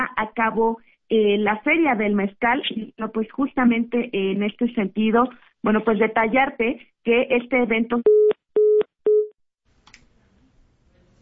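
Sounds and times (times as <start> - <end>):
speech: 0.0 - 8.4
telephone busy tone after a dropped call: 8.1 - 9.3.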